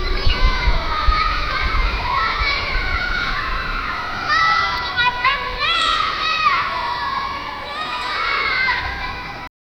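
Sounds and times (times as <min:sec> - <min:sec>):
distant children playing: 0:00.0 - 0:09.5.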